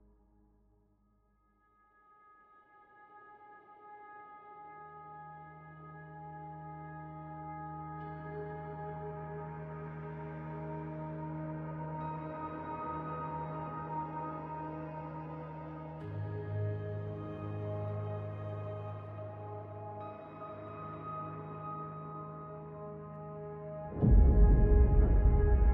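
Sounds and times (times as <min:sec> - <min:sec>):
theme music: 0:09.0 - 0:25.7.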